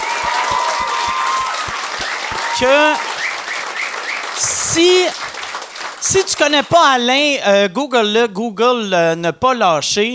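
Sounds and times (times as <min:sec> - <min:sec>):
audience applause: 0:00.0 - 0:06.7
speech: 0:02.6 - 0:03.1, 0:04.4 - 0:05.2, 0:06.1 - 0:10.1.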